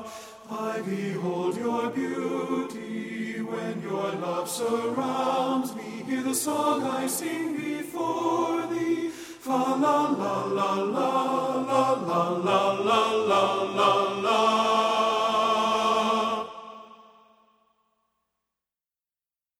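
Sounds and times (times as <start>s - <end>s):
tenor part of choral piece singing: 0.0s - 17.0s.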